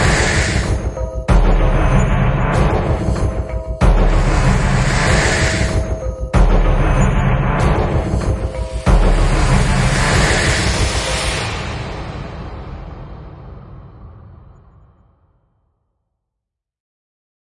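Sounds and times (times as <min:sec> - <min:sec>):
percussion: 0:00.0 - 0:13.6.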